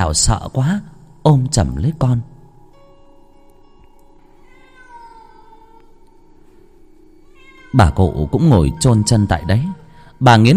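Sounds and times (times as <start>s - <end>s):
speech: 0.0s - 2.3s, 7.7s - 10.5s
cat yowling eerily: 4.3s - 6.0s, 7.2s - 10.2s.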